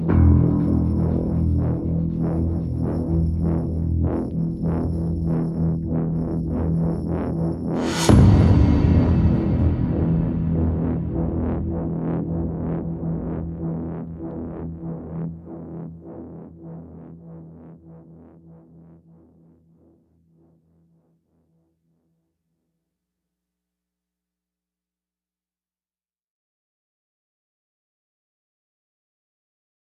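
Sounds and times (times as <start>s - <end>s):
percussion: 0.0s - 14.5s
synths: 0.0s - 19.2s.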